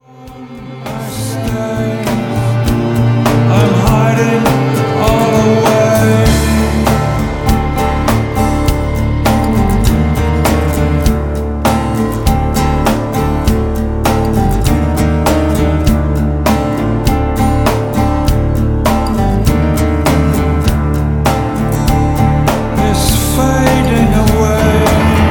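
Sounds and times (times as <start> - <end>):
acoustic music: 0.0 - 25.2.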